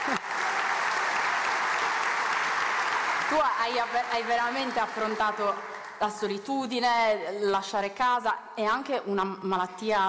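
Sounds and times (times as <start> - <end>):
audience applause: 0.0 - 6.0
speech: 3.3 - 10.0.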